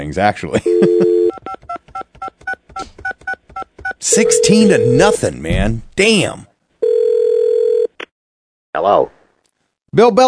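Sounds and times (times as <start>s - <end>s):
speech: 0.0s - 1.8s, 4.0s - 6.5s, 8.8s - 9.2s, 10.0s - 10.2s
steady dial tone: 0.7s - 1.3s, 6.8s - 7.9s.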